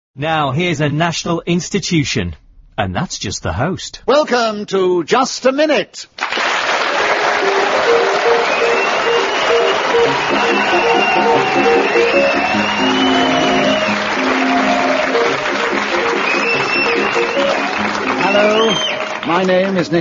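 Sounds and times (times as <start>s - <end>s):
speech: 0.2s - 6.4s, 10.0s - 14.0s, 16.8s - 19.9s
studio applause: 6.2s - 19.9s
piano waltz theme of a panel game show: 7.4s - 18.5s.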